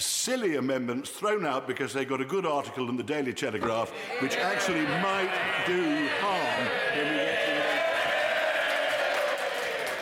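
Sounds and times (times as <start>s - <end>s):
speech: 0.0s - 7.2s
applause from parliamentary opposition benches: 7.5s - 9.9s.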